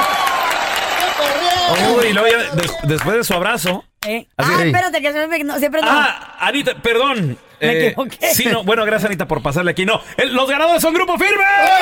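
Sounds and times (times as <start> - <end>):
audience applause: 0.0 - 3.4
speech: 1.8 - 11.7.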